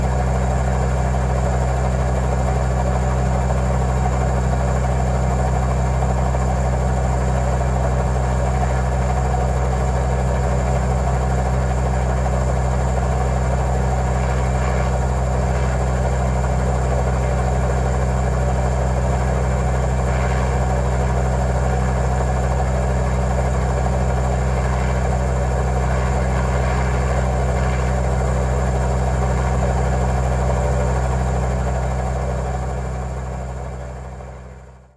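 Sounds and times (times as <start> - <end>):
helicopter in flight heard from the cockpit: 0.0 - 34.8.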